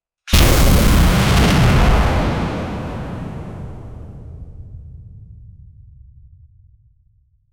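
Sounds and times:
short rocket sound: 0.3s - 5.9s.

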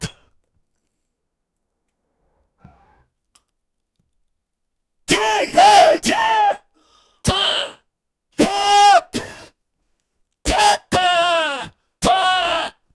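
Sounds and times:
person yelling while smoking weed: 5.1s - 6.6s, 8.4s - 9.2s, 10.5s - 12.8s.

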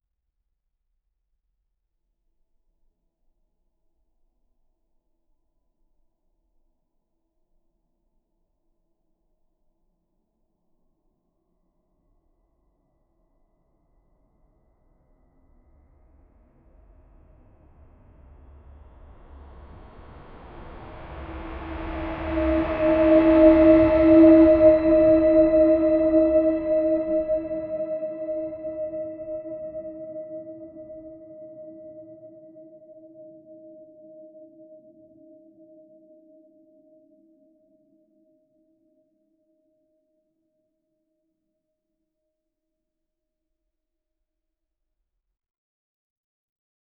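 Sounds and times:
deep resonant shankh conch in a temple: 21.0s - 35.4s.

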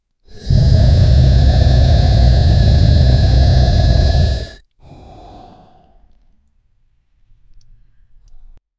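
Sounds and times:
dragon breathing fire: 0.3s - 6.1s.

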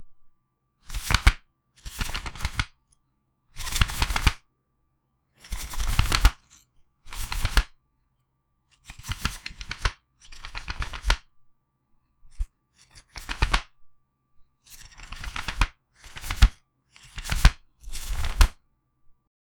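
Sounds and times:
playing cards on a tabletop: 0.8s - 2.8s, 3.5s - 4.4s, 5.4s - 7.8s, 8.7s - 11.3s, 12.2s - 13.8s, 14.4s - 18.6s.

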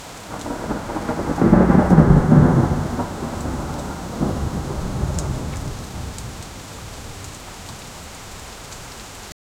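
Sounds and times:
heavy thunderstorm rain: 0.0s - 9.3s.

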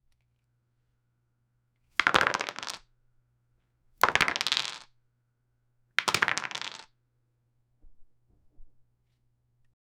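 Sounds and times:
ludo dice rolling: 2.0s - 2.8s, 4.0s - 4.9s, 6.0s - 6.9s.

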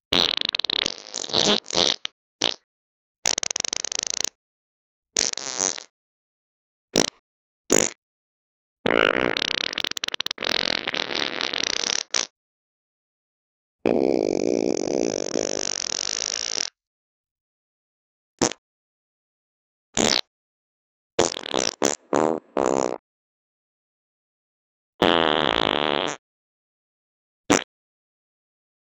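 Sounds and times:
farts: 0.1s - 2.6s, 3.3s - 4.4s, 5.2s - 5.9s, 7.0s - 8.0s, 8.8s - 12.3s, 13.8s - 16.8s, 18.4s - 18.6s, 20.0s - 20.3s, 21.2s - 23.0s, 25.0s - 26.2s, 27.5s - 27.7s.

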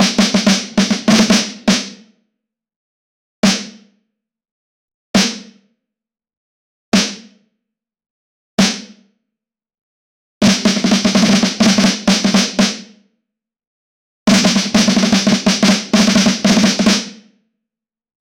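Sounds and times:
snare drum hits: 0.0s - 1.8s, 10.4s - 12.7s, 14.3s - 17.0s.

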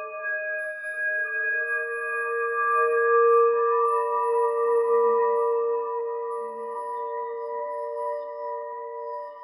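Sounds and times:
melancholic eerie bell: 0.0s - 9.4s.

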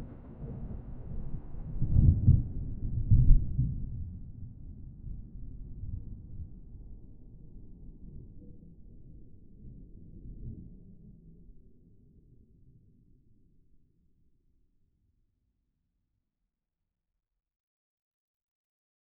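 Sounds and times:
thunder in an open field: 0.0s - 6.8s.

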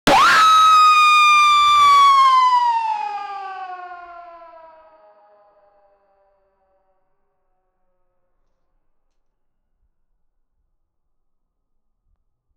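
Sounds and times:
siren: 0.0s - 7.8s.

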